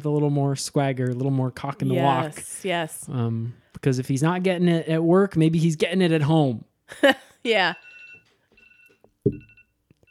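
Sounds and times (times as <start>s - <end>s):
speech: 0.0s - 7.9s, 9.2s - 9.5s
timer alarm going off: 7.7s - 10.0s.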